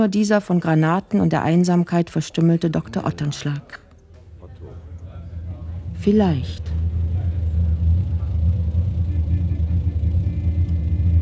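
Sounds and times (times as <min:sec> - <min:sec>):
speech: 0:00.0 - 0:03.8, 0:06.0 - 0:06.8
car engine idling: 0:04.3 - 0:11.2.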